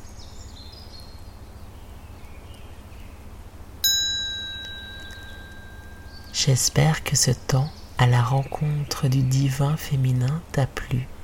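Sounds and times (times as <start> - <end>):
small hand bell struck to close a meditation: 3.8 - 6.2
speech: 6.4 - 11.1.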